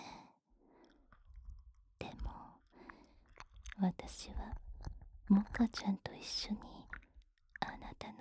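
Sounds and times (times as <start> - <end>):
nipple licking: 0.8 - 5.9, 6.6 - 8.0
ear licking: 2.6 - 3.8, 6.9 - 7.1.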